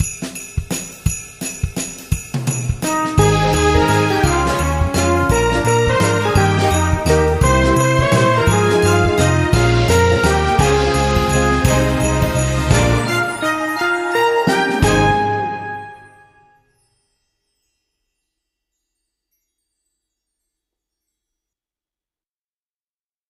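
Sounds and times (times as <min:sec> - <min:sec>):
jazz Christmas carol: 0:02.2 - 0:16.7.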